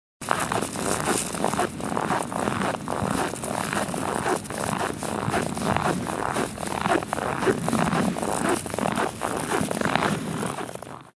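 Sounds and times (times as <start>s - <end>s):
snow sounds: 0.2s - 10.9s.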